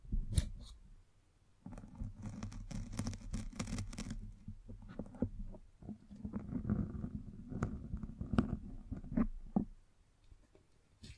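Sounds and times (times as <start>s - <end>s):
microphone being brushed and scratched: 1.7s - 5.3s, 6.1s - 9.4s.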